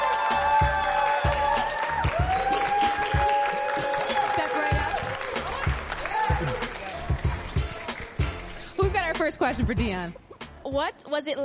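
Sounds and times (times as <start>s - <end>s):
whoops and hollers: 0.0s - 5.0s
large audience applause: 0.0s - 8.5s
speech: 9.4s - 11.4s.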